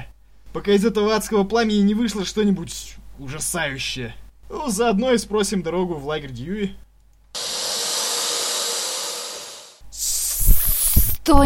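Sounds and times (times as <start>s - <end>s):
speech: 0.5s - 6.8s
snake hissing: 7.4s - 11.2s.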